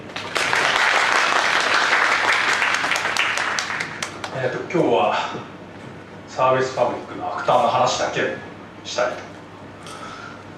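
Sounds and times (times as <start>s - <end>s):
audience applause: 0.0s - 4.4s
speech: 4.4s - 5.5s, 6.4s - 9.3s.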